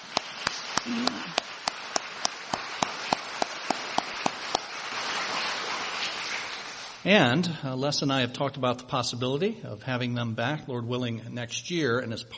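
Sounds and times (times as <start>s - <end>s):
single sharp evenly spaced clap: 0.0s - 4.9s
audience applause: 0.0s - 7.0s
speech: 0.8s - 1.4s, 7.0s - 12.3s.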